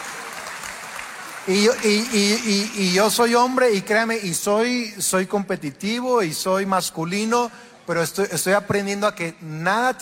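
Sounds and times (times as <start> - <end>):
women in an audience applauding: 0.0 - 3.6
speech: 1.5 - 10.0.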